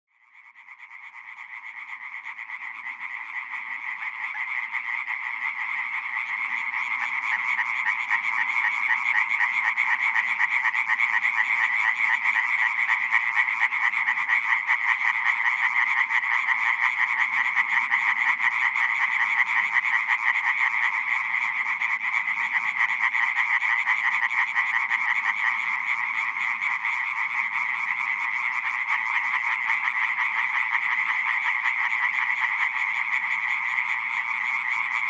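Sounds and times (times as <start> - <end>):
green tree frog calling: 0.1 - 35.0.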